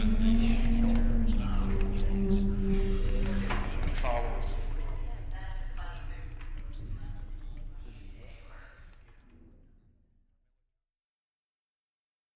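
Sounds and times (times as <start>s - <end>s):
soundscape: 0.0s - 5.2s.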